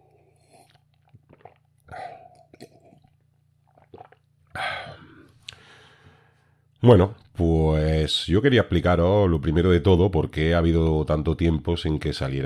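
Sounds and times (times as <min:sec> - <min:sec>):
person sipping beer: 0:00.0 - 0:06.3
low steady hum: 0:00.0 - 0:12.4
speech: 0:06.8 - 0:12.4.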